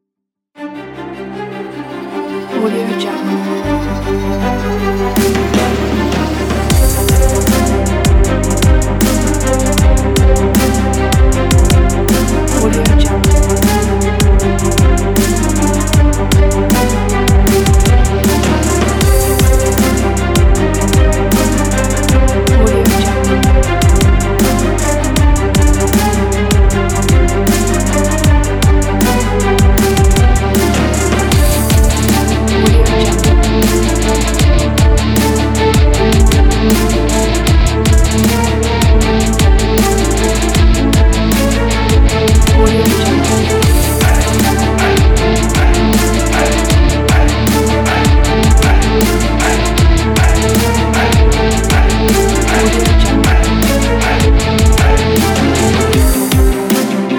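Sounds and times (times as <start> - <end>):
heroic epic hip hop music: 0.7 - 57.1.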